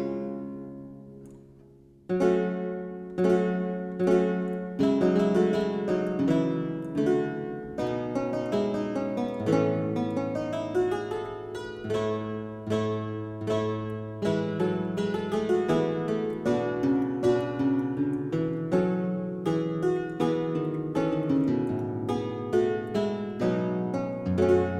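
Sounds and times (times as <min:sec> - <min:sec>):
German Lautenwerck lute-harpsichord playing: 0:00.0 - 0:01.2, 0:02.1 - 0:24.7.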